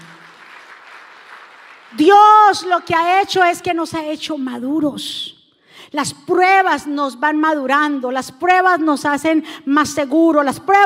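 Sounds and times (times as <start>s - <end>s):
loud audience applause: 0.0s - 2.0s
speech: 1.9s - 10.8s.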